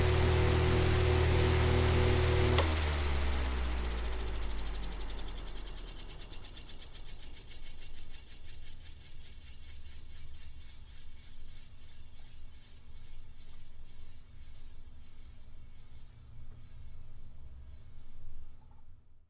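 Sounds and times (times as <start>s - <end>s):
fan switched on, running and switched off: 0.0s - 7.6s.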